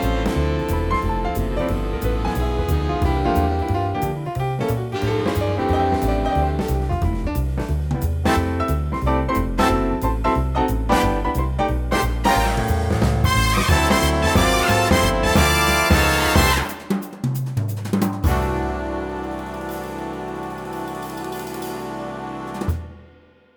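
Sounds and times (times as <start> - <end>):
jazz played on a Yamaha Genos keyboard: 0.0 - 16.8, 18.2 - 22.9.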